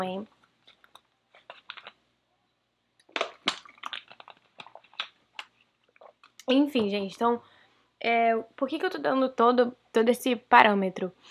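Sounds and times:
speech: 0.0 - 0.4, 6.5 - 11.2
taking a sip of water: 0.6 - 2.0, 3.0 - 6.5.

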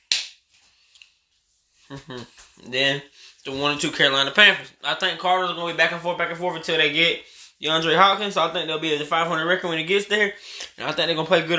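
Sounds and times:
child clapping hands: 0.0 - 0.4
speech: 1.9 - 11.5.

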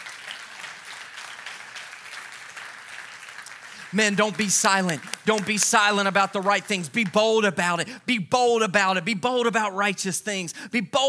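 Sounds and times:
audience clapping hands: 0.0 - 7.9
speech: 3.9 - 11.0.

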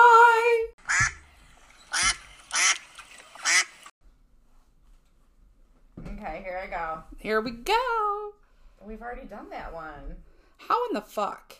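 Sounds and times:
duck quacking sound effect: 0.9 - 1.2, 1.9 - 2.8, 3.4 - 3.7
speech: 6.4 - 11.5.

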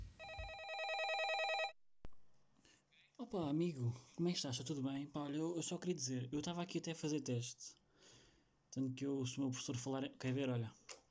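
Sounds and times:
telephone ringing for an incoming call: 0.2 - 1.8
speech: 3.3 - 10.9.

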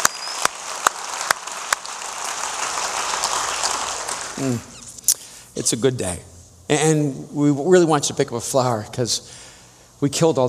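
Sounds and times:
audience applause: 0.0 - 4.9
speech: 4.4 - 4.7, 5.6 - 10.4.

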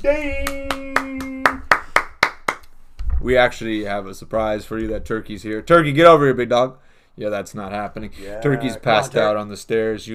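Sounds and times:
speech: 0.0 - 0.4, 3.2 - 10.1
round of applause, clapping hands: 0.4 - 2.8.

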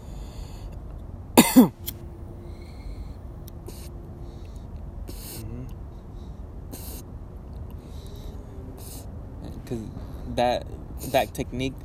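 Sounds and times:
low hum: 0.0 - 11.8
coughs after inhaling smoke: 1.4 - 1.9
speech: 1.5 - 1.8, 9.7 - 11.8.

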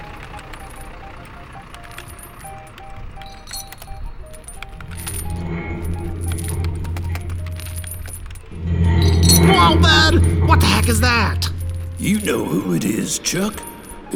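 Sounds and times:
chains rattling: 4.7 - 13.0
low rumble: 4.7 - 13.2
speech: 10.1 - 14.1.

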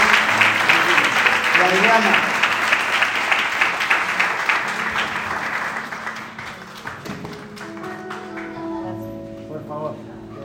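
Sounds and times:
applause: 0.0 - 8.9
speech: 1.6 - 2.3.

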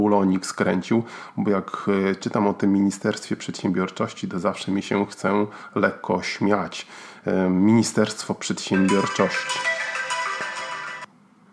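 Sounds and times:
speech: 0.0 - 9.8
phone ringtone of layered electronic tones: 8.8 - 11.1.

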